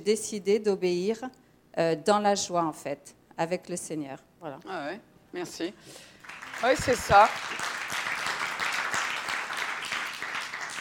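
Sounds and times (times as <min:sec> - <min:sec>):
speech: 0:00.0 - 0:07.7
audience applause: 0:06.2 - 0:10.7.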